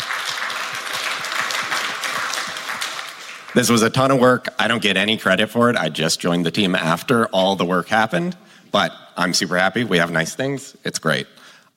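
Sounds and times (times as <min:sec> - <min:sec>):
audience applause: 0:00.0 - 0:04.1
speech: 0:03.6 - 0:11.7.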